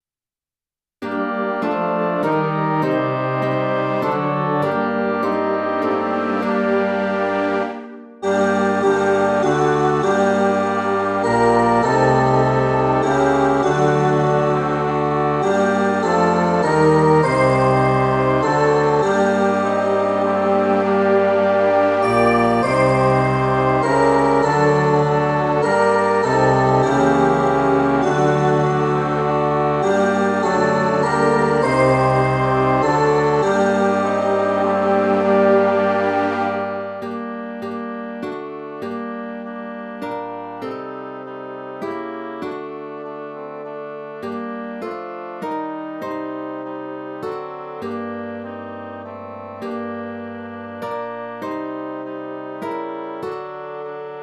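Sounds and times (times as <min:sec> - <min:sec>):
MIDI music: 0:01.0 - 0:54.2.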